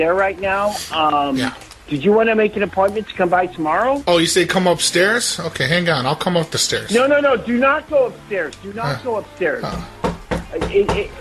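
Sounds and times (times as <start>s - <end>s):
speech: 0.0s - 11.2s
knocking on a door: 9.6s - 11.2s.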